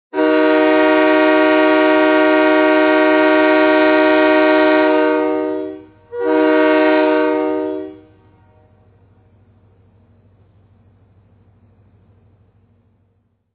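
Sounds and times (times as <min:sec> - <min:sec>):
two horns: 0:00.1 - 0:08.7.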